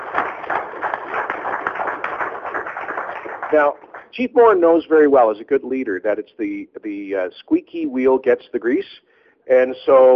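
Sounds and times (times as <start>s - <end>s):
round of applause: 0.0s - 4.2s
speech: 3.5s - 10.1s.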